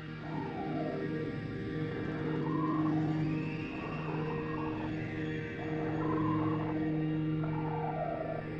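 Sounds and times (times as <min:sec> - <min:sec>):
whale song sustained tonal moans: 0:00.2 - 0:08.5.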